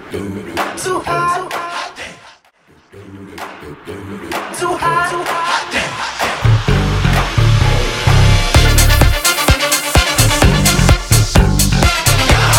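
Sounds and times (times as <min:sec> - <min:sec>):
house music mashup: 0:04.3 - 0:12.5.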